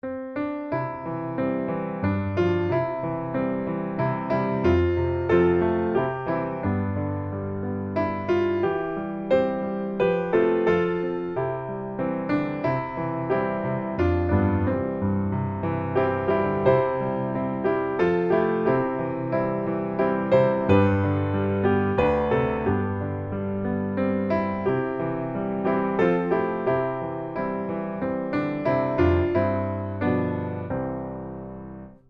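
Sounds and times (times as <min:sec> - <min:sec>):
piano: 0:00.0 - 0:32.0.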